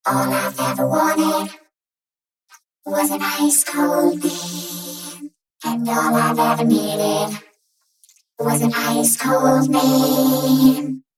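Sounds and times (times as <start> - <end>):
vocoder voice: 0.1 - 1.6, 2.9 - 7.4, 8.4 - 11.0.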